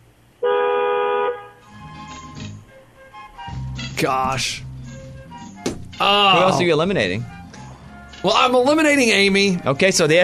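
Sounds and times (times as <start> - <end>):
car horn honking: 0.4 - 1.8
speech: 4.0 - 4.6, 6.0 - 7.3, 8.2 - 10.2.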